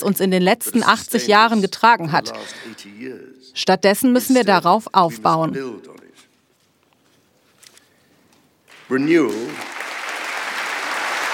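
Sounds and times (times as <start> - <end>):
speech: 0.0 - 6.0, 8.9 - 9.7
applause from the vice president: 8.7 - 11.3.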